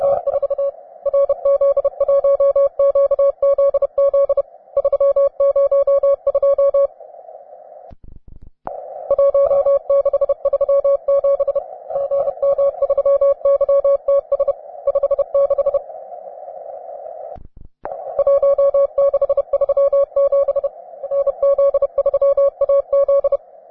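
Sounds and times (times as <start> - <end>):
advanced morse code tones: 0.0 - 6.9, 9.1 - 15.8, 17.9 - 23.6.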